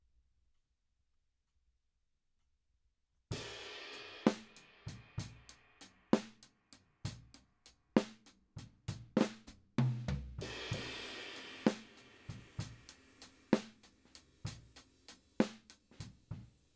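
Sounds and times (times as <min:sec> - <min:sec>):
drums: 0:03.3 - 0:16.7.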